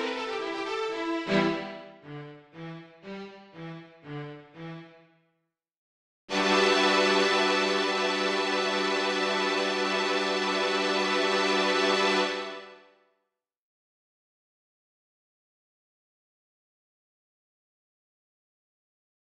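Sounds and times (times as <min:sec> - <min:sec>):
ensemble music for viola and other instruments: 0:00.0 - 0:05.0, 0:06.3 - 0:12.8.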